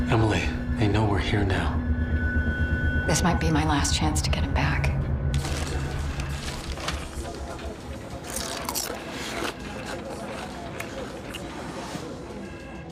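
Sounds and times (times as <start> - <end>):
speech: 0.1 - 2.0, 3.1 - 4.8
munching snacks: 5.4 - 12.8.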